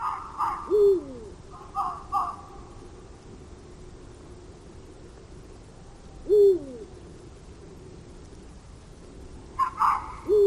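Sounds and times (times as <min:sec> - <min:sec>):
fox barking: 0:00.0 - 0:00.8, 0:01.5 - 0:02.6, 0:09.6 - 0:10.4
eagle owl hooting: 0:00.0 - 0:02.6, 0:06.0 - 0:07.0, 0:09.6 - 0:10.4.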